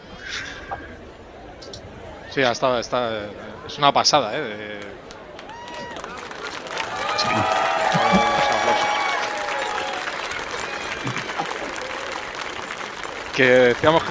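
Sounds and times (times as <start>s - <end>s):
speech: 2.3s - 5.1s, 13.4s - 14.0s
laughter: 2.4s - 12.6s, 13.4s - 14.0s
applause: 4.8s - 14.0s.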